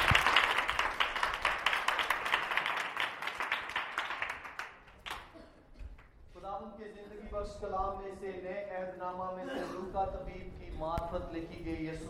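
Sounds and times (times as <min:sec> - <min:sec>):
audience applause: 0:00.0 - 0:05.4
speech: 0:07.5 - 0:12.0.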